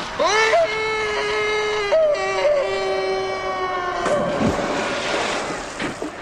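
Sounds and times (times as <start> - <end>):
man screaming while falling into water in a movie: 0.2 - 4.0
splash as man hits the water: 4.0 - 6.1.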